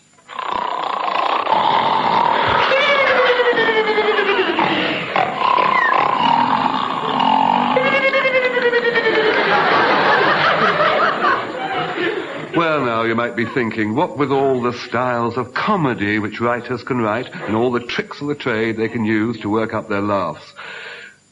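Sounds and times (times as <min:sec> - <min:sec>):
comedy sound effect of men snoring: 0:00.3 - 0:08.1
laughter: 0:02.4 - 0:05.9, 0:07.8 - 0:18.0
speech: 0:13.2 - 0:21.3.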